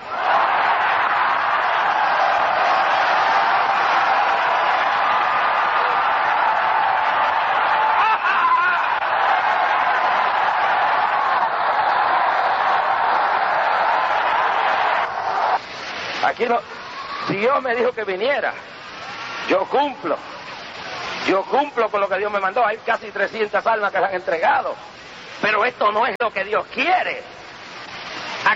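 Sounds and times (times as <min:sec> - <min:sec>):
audience shouting in praise: 0:00.0 - 0:15.6, 0:16.7 - 0:17.5
speech: 0:16.4 - 0:16.7, 0:17.3 - 0:18.7, 0:19.4 - 0:20.3, 0:21.2 - 0:27.3.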